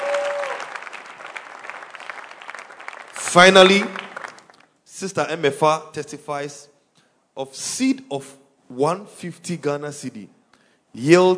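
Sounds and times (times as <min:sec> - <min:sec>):
audience clapping hands in praise: 0:00.0 - 0:04.8
speech: 0:03.3 - 0:04.0, 0:05.0 - 0:06.7, 0:07.4 - 0:11.3.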